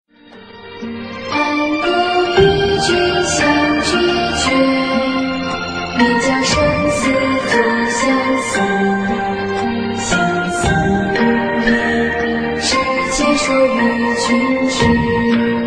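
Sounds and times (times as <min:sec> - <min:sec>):
children's music: 0:00.2 - 0:15.6.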